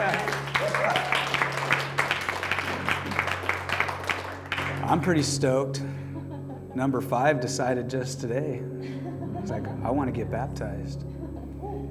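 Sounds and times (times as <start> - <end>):
audience clapping: 0.0 - 5.2
speech: 4.9 - 6.0, 6.8 - 11.1.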